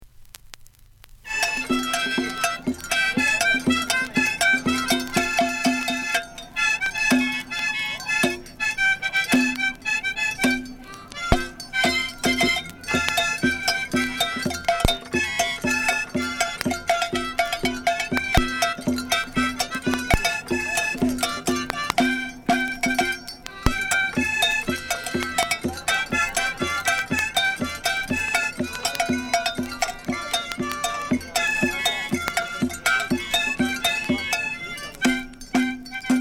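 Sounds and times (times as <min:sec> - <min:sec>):
one-man band playing: 0:01.3 - 0:36.1.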